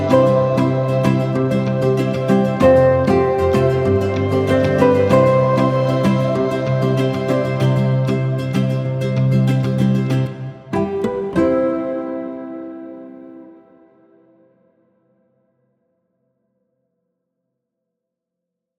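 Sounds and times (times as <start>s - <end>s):
summery underscore music: 0.0s - 13.9s.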